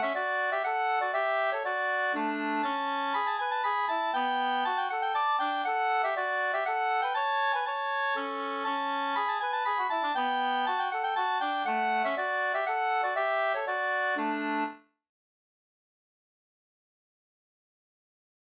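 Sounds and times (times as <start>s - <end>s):
two-part slangpolska: 0.0s - 14.8s.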